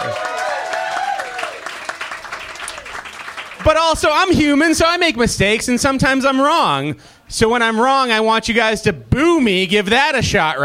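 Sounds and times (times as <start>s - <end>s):
crowd cheering and whooping: 0.0s - 3.1s
audience clapping: 0.0s - 4.4s
speech: 3.7s - 10.6s.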